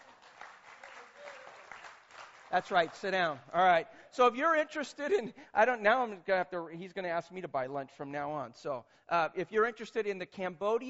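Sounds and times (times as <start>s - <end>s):
audience clapping: 0.0s - 3.5s
speech: 2.5s - 10.8s.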